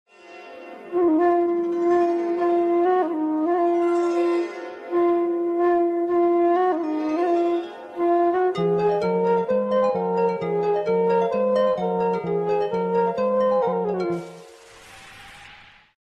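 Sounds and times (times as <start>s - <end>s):
flute ringtone: 0.9s - 14.6s.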